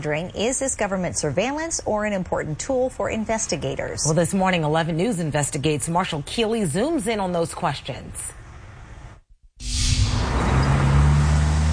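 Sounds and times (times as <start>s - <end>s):
speech: 0.0s - 8.4s
cars passing through a busy city intersection: 8.4s - 11.7s.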